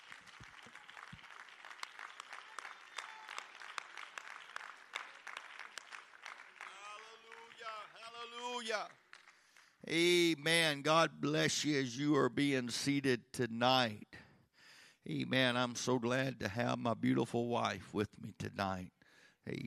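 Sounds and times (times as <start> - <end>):
audience clapping hands: 0.0 - 10.2
speech: 8.2 - 9.0, 9.8 - 14.1, 15.1 - 19.6.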